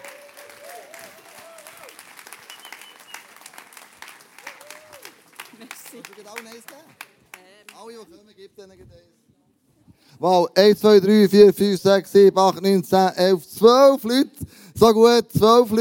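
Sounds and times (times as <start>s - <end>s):
crowd applauding: 0.0s - 7.9s
speech: 6.0s - 7.1s, 7.8s - 9.2s, 10.2s - 15.7s.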